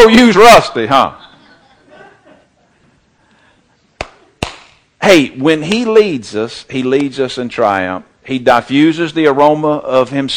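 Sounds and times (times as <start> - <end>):
speech: 0.0 - 1.2, 5.0 - 10.3
sharp slap: 4.0 - 4.8.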